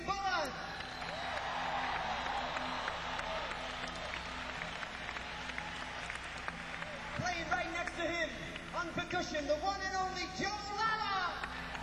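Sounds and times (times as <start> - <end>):
faint cheers: 0.3 - 8.3
crowd applause: 0.7 - 8.8, 11.4 - 11.8
speech: 8.9 - 11.4.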